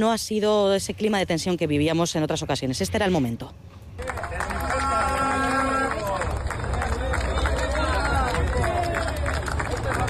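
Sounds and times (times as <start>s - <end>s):
speech: 0.0s - 4.1s
striking workers applauding ironically as buses arrive: 4.0s - 10.0s.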